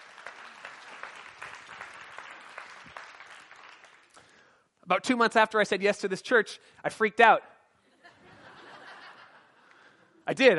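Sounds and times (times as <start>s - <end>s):
audience clapping: 0.0s - 4.4s
speech: 4.9s - 7.5s, 10.3s - 10.5s
laughter: 7.9s - 10.2s.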